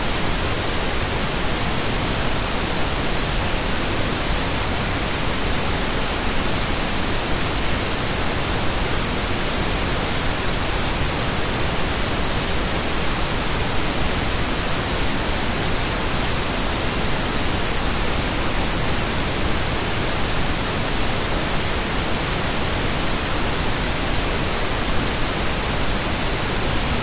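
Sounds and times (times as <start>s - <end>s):
pink noise: 0.0s - 27.0s.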